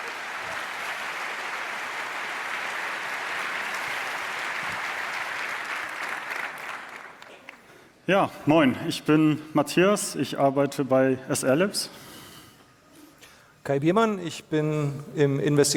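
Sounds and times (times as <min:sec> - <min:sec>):
audience applause: 0:00.0 - 0:07.7
speech: 0:08.1 - 0:12.1, 0:13.6 - 0:15.7.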